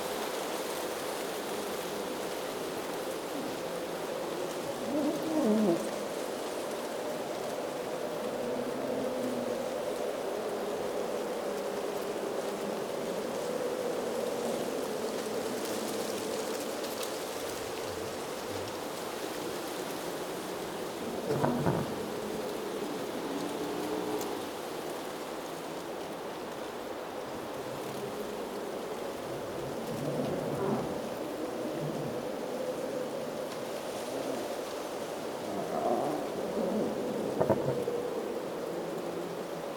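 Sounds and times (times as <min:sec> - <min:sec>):
designed wild storm wind whistling in shrubs: 0:00.0 - 0:39.7.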